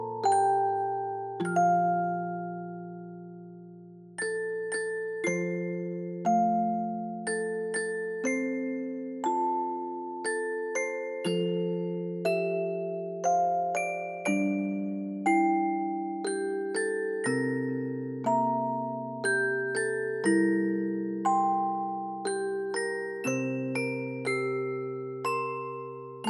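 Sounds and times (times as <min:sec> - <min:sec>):
slow lullaby background music with reverb: 0:00.0 - 0:26.2.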